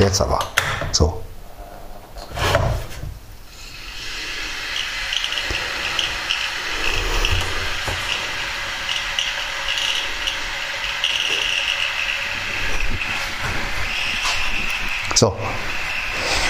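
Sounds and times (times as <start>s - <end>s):
speech: 0.0s - 1.2s, 15.2s - 15.7s
electric kettle heating water: 3.4s - 16.4s.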